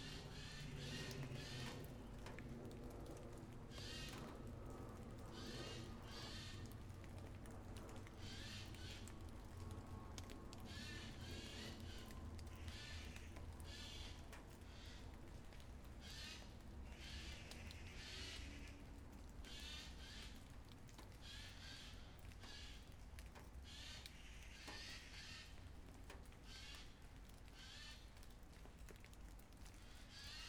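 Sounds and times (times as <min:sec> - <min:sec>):
airplane over Draguignan: 0:00.0 - 0:11.8
light rain in Draguignan: 0:00.0 - 0:30.4.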